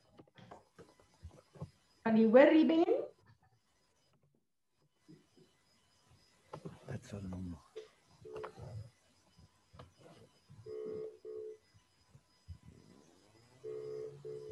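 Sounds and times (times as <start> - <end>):
speech: 2.1 - 2.9
telephone ringback tones: 10.6 - 11.6, 13.6 - 14.4.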